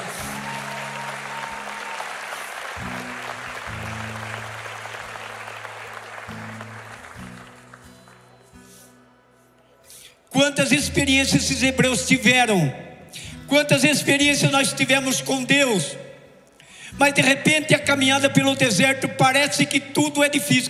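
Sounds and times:
audience applauding: 0.0 - 9.0
speech: 10.4 - 12.9, 13.5 - 16.0, 17.0 - 20.6.

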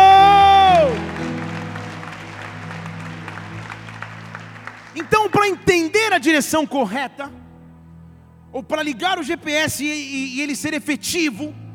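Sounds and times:
audience applause: 0.0 - 6.3
speech: 5.4 - 7.4, 8.5 - 11.6.

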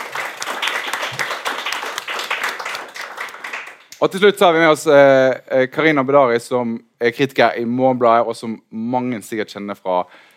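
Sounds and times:
audience applause: 0.0 - 3.9
speech: 4.0 - 10.3.

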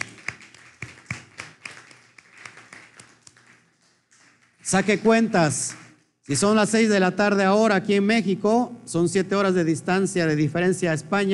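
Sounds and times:
scattered applause from a small group: 0.0 - 5.9
speech: 4.7 - 11.3.

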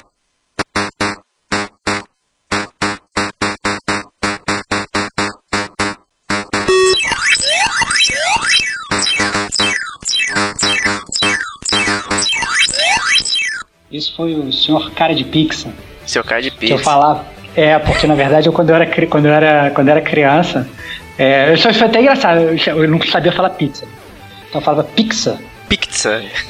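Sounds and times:
Pac-Man arcade game chomping blips: 0.6 - 13.7
arcade game electronic jingle: 6.6 - 13.7
Pac-Man arcade game synth sweeps and chirps: 6.7 - 13.7
speech: 14.2 - 26.4.

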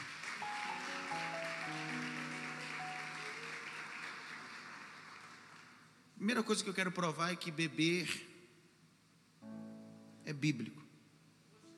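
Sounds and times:
audience applauding: 0.0 - 6.0
speech: 6.2 - 8.3, 10.3 - 10.8.

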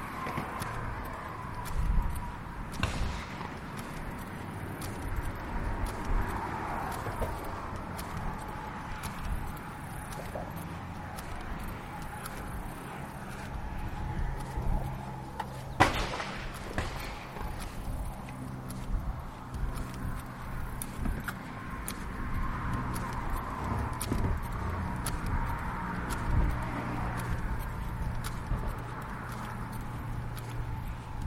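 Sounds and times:
cars passing: 0.0 - 31.2
footsteps: 0.0 - 31.2
low rumble of traffic: 0.0 - 31.2
sharp bang: 15.8 - 17.3.

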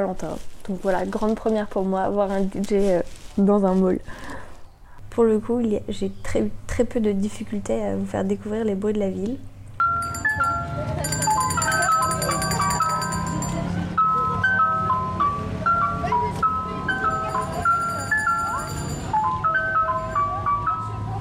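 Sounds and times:
speech: 0.0 - 4.4, 5.1 - 9.5
ice cream vendor's jingle music: 9.8 - 21.1.

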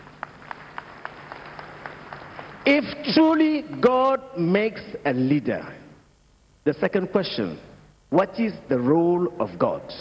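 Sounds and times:
audience clapping in a steady unified rhythm: 0.0 - 4.2
low hum: 0.0 - 9.9
speech: 2.7 - 5.8, 6.6 - 9.9.

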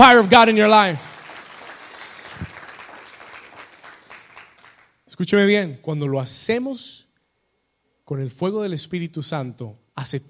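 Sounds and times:
speech: 0.0 - 1.1, 5.2 - 7.0, 8.1 - 10.2
audience applauding: 0.0 - 5.0.

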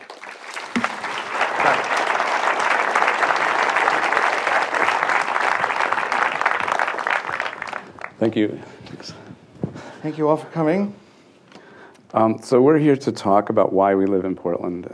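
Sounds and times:
audience applause welcoming Gus Van Sant and Brad Cloepfil: 0.0 - 8.4
speech: 8.2 - 9.3, 10.0 - 11.0, 12.2 - 14.9.

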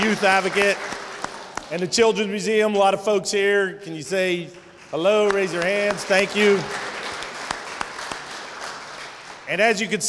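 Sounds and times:
audience applause: 0.0 - 1.8, 4.9 - 9.5
speech: 0.1 - 0.9, 1.7 - 6.9, 9.5 - 10.0.

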